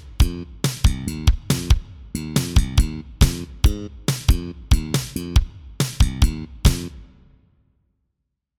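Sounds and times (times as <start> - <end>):
funk music: 0.2 - 6.9.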